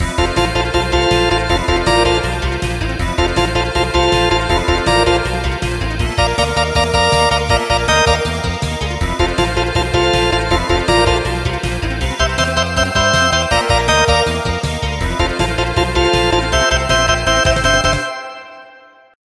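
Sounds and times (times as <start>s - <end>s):
game level jingle: 0.0s - 19.1s.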